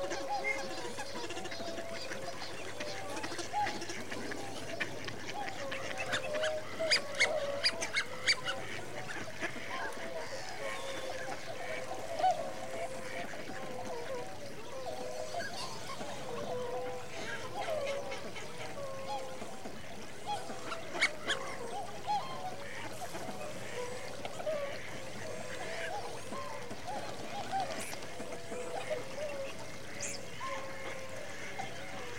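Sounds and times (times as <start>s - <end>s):
winter migrant waterfowl flock calling: 0.0s - 32.1s.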